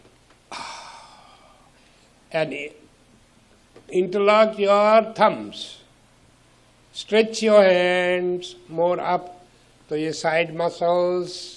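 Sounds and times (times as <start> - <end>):
deep inhale during a yoga stretch: 0.5 - 2.2
speech: 2.3 - 2.8, 3.8 - 5.8, 7.0 - 11.5.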